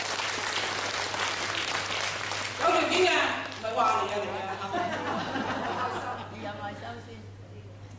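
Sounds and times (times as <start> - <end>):
audience clapping: 0.0 - 4.7
laughter: 4.2 - 6.5.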